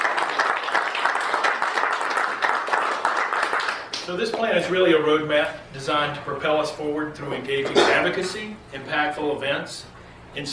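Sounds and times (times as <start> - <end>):
audience applause: 0.0 - 4.0
speech: 4.1 - 10.5.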